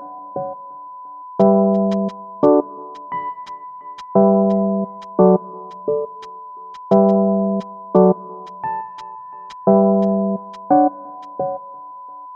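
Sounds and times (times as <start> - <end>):
air groove music: 1.4 - 3.1, 4.0 - 6.1, 6.8 - 11.3.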